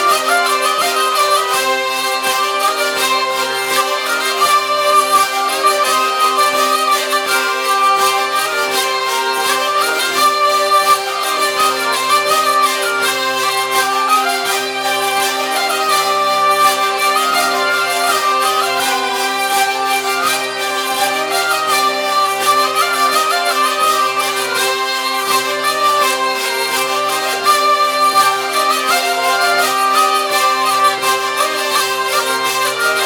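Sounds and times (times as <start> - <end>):
hurdy-gurdies playing at a festival: 0.0 - 33.0.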